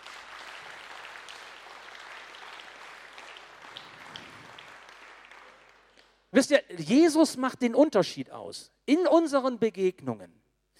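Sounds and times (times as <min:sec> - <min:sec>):
audience applause: 0:00.0 - 0:06.0
speech: 0:06.4 - 0:10.4.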